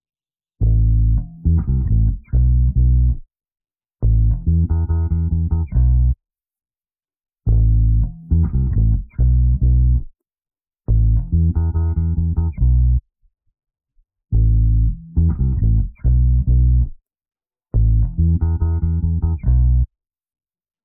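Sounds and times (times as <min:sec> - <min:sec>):
home base music: 0:00.6 - 0:03.3, 0:04.0 - 0:06.2, 0:07.5 - 0:10.2, 0:10.9 - 0:13.1, 0:14.3 - 0:17.0, 0:17.7 - 0:20.0.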